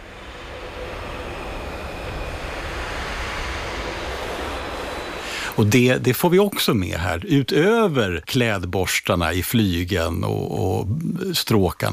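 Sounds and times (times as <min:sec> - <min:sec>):
brass players blowing air through instruments without a note: 0:05.2 - 0:05.6
speech: 0:05.6 - 0:11.9.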